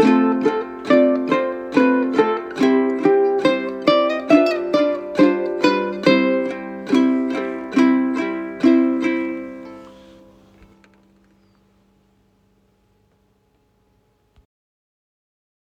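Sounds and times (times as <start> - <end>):
ukulele playing a folk song: 0.0 - 11.5.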